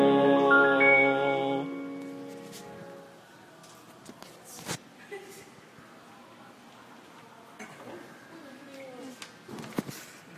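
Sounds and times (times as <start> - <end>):
bass prelude: 0.0 - 2.4.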